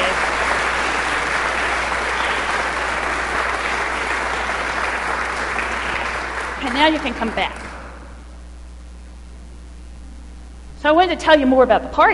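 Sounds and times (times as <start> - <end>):
church congregation applause in thanksgiving: 0.0 - 8.2
speech: 6.8 - 7.6, 10.8 - 12.1.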